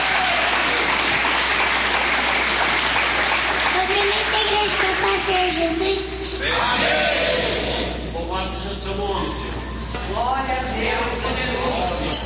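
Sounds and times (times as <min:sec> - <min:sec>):
applause: 0:00.0 - 0:05.8
speech: 0:05.2 - 0:12.2.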